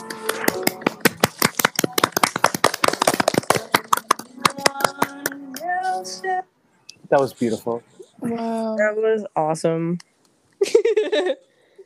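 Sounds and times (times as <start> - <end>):
audience clapping and applause: 0.0 - 5.2
speech: 7.1 - 11.5.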